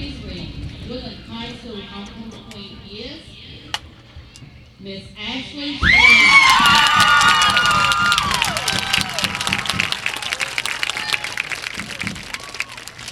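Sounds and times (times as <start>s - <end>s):
speech: 0.9s - 3.4s, 4.8s - 6.5s
high sliding whoops and shouts: 5.8s - 11.4s
crowd clapping: 6.0s - 13.1s.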